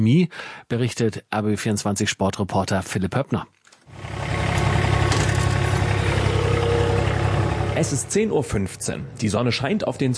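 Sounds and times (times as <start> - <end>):
speech: 0.0 - 4.2, 7.8 - 10.1
ride-on lawn mower engine running: 3.9 - 8.3.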